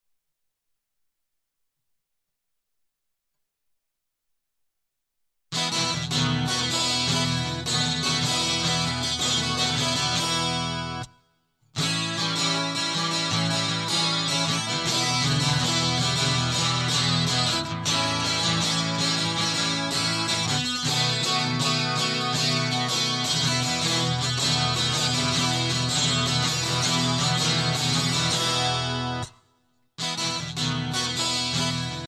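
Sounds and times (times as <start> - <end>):
guitar loop: 5.6 - 11.1, 11.8 - 29.4, 30.0 - 32.0.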